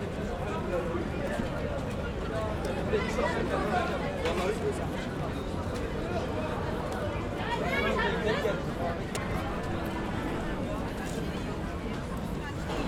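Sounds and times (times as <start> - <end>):
Turkish voices of crowd in Taksim Istanbul: 0.0 - 12.8
people passing by in Taksim Istanbul: 0.0 - 12.8.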